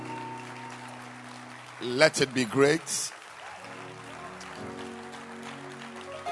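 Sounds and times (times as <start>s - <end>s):
crowd hand clapping: 0.0s - 6.3s
speech: 1.8s - 3.2s.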